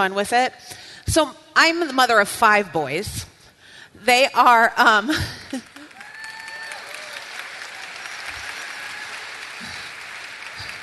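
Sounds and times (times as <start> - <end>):
speech: 0.0 - 3.3, 3.9 - 5.7
audience applause: 5.7 - 10.8.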